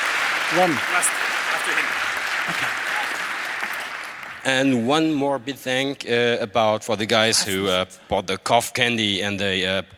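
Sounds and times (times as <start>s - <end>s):
audience applause: 0.0s - 4.7s
speech: 0.5s - 2.8s, 4.4s - 9.9s.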